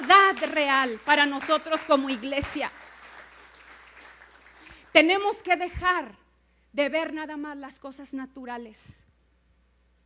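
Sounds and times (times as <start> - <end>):
audience applause: 0.0 - 4.9
speech: 0.3 - 2.9, 4.9 - 6.2, 6.8 - 9.0.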